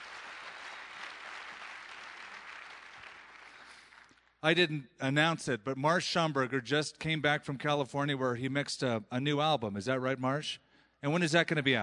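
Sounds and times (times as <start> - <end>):
audience applause: 0.0 - 4.2
speech: 4.4 - 11.8.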